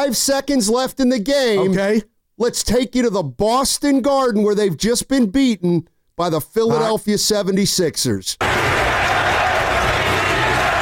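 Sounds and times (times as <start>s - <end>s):
speech: 0.0s - 8.8s
arena crowd chanting: 8.4s - 10.8s.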